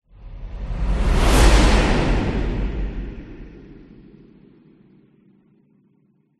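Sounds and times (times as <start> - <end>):
whoosh: 0.1 - 4.7.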